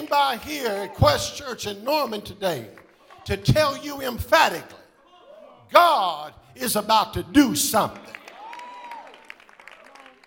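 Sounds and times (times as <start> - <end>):
audience clapping: 0.0 - 4.1, 7.8 - 10.2
speech: 0.1 - 4.8, 5.7 - 8.2.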